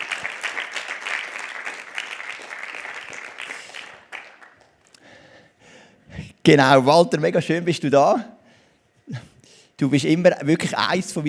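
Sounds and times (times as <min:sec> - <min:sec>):
applause: 0:00.0 - 0:04.9
speech: 0:06.4 - 0:08.3, 0:09.8 - 0:11.2.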